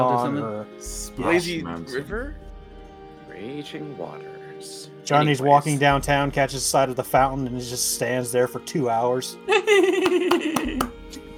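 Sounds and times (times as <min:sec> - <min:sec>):
speech: 0:00.0 - 0:02.5, 0:03.4 - 0:11.2
laughter: 0:09.5 - 0:10.9
quiet hand clap: 0:10.0 - 0:11.3.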